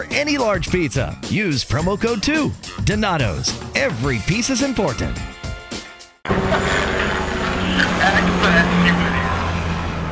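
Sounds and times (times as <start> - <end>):
speech: 0.0 - 5.3
helicopter flying overhead: 6.3 - 10.0.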